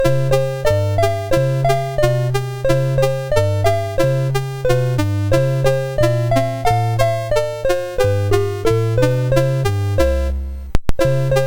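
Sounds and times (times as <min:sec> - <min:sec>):
chiptune music on a MOS6581R2 chip: 0:00.0 - 0:11.4.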